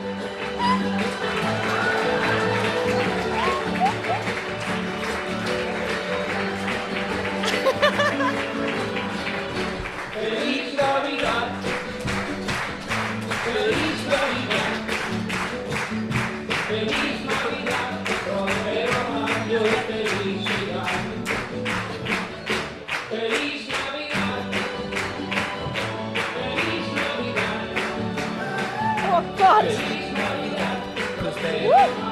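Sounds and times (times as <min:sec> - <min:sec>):
loud applause: 0:00.1 - 0:32.0
laughter: 0:00.5 - 0:04.6, 0:05.7 - 0:10.0.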